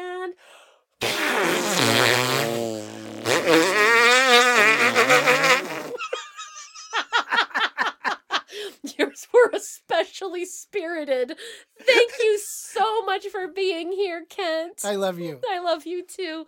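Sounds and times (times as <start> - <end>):
fart: 1.0 - 6.0
laughter: 6.0 - 8.5, 11.8 - 12.4
speech: 10.4 - 11.7, 13.2 - 16.4.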